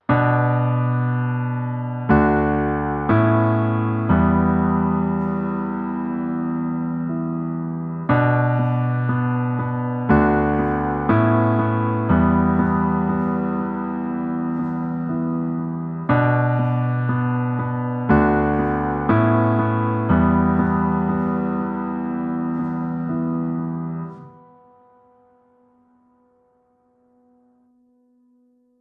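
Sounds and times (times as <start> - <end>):
music: 0.0 - 28.7.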